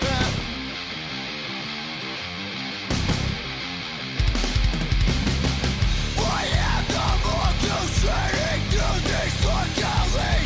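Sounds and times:
heavy theme song for a podcast segment: 0:00.0 - 0:10.4.

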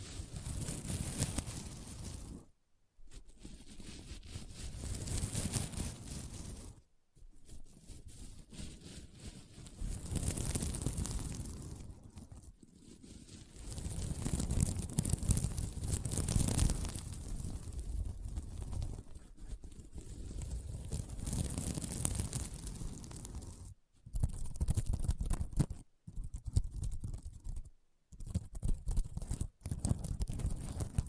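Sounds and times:
scratching across a sequin mermaid pillow: 0:00.0 - 0:31.0.

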